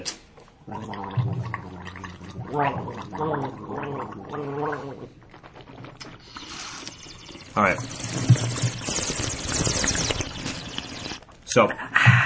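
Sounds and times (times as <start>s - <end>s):
speech: 0.0s - 5.4s, 7.6s - 8.3s, 11.6s - 11.9s
voice imitating bubbling hit from a bong: 0.0s - 11.2s.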